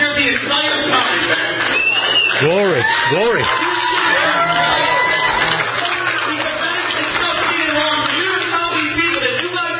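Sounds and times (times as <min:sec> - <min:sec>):
overlapping voices: 0:00.2 - 0:09.5
audience applauding: 0:00.3 - 0:09.7
crowd cheering: 0:00.6 - 0:08.4.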